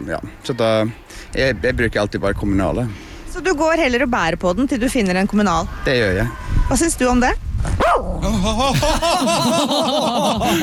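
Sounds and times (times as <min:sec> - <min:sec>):
speech: 0:00.0 - 0:10.6
dog barking and yelping: 0:07.8 - 0:08.2
laughter: 0:08.2 - 0:10.6.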